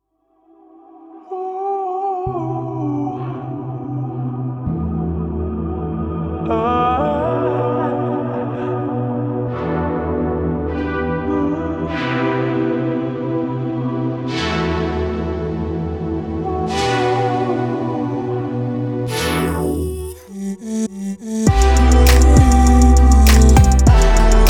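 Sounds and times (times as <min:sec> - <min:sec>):
modern pop music: 0:04.6 - 0:20.8, 0:21.4 - 0:24.4.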